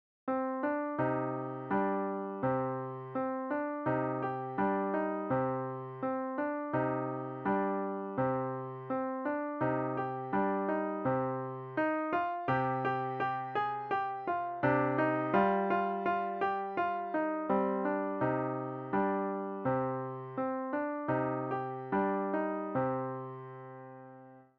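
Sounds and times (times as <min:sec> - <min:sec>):
piano: 0:00.3 - 0:24.5.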